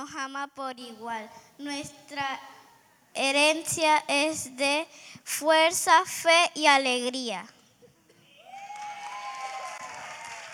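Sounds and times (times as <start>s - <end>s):
speech: 0.1s - 2.6s, 3.2s - 7.6s
audience applause: 8.4s - 10.5s.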